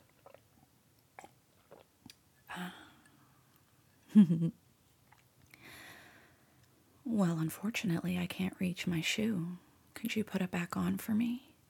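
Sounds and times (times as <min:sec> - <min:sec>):
person sipping a cold mocha: 0:00.0 - 0:03.6, 0:05.0 - 0:05.6
speech: 0:04.2 - 0:04.6, 0:07.2 - 0:11.5.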